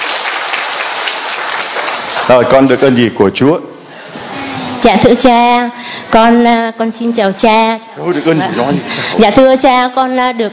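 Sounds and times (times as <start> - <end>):
crowd clapping: 0.0 - 2.8
speech: 2.3 - 3.7, 4.8 - 10.5.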